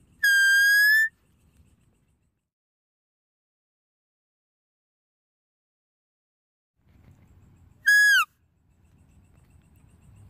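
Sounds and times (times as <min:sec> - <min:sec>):
deer whistle call: 0:00.2 - 0:01.1, 0:07.9 - 0:08.3.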